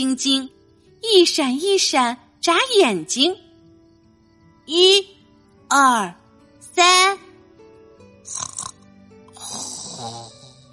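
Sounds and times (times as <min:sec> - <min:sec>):
speech: 0:00.0 - 0:03.4, 0:04.7 - 0:06.2, 0:06.8 - 0:07.2, 0:08.3 - 0:08.5, 0:09.5 - 0:10.4
snoring: 0:08.2 - 0:10.7.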